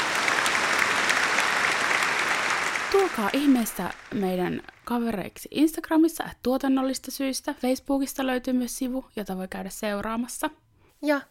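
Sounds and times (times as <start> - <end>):
applause sound effect: 0.0 - 5.1
speech: 2.9 - 11.3.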